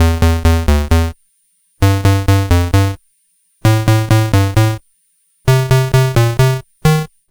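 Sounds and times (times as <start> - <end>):
Game Boy bass: 0.0 - 1.2, 1.8 - 3.0, 3.7 - 4.8, 5.5 - 7.1.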